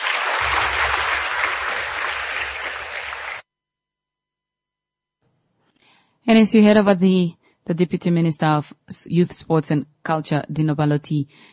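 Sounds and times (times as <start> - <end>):
audience applause: 0.0 - 3.4
speech: 6.3 - 11.5.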